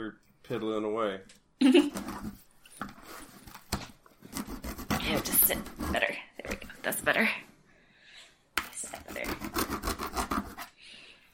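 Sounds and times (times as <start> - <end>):
speech: 0.1 - 2.9, 5.1 - 7.5
knife sawing open a cardboard box: 4.3 - 6.2, 9.0 - 10.7.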